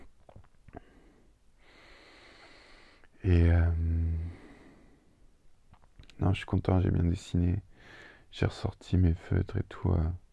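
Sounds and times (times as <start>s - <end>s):
breath drawn in from an asthma inhaler: 0.7s - 3.1s, 7.8s - 8.3s
speech: 3.3s - 4.0s, 6.2s - 7.7s, 8.3s - 10.2s.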